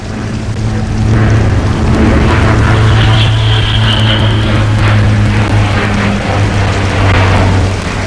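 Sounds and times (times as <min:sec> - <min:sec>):
Bücker B131 biplane piston engine in low flight: 0:00.0 - 0:08.0.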